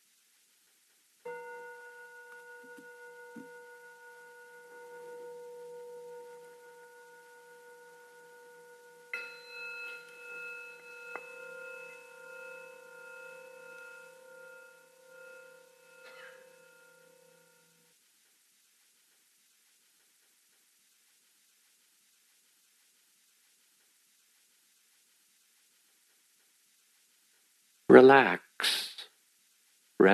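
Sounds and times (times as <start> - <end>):
bells ringing: 1.3 - 17.8
speech: 27.9 - 28.8.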